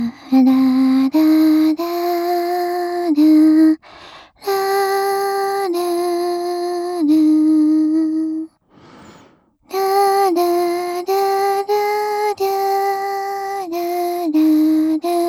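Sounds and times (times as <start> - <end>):
lullaby without reverb: 0.0 - 8.9, 9.7 - 15.2.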